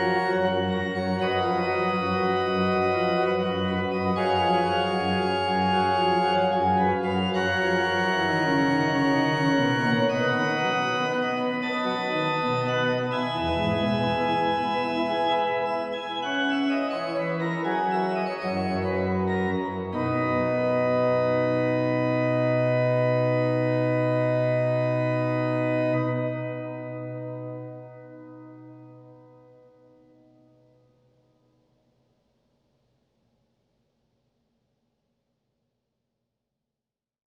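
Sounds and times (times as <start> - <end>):
organist playing a prelude: 0.0 - 29.8.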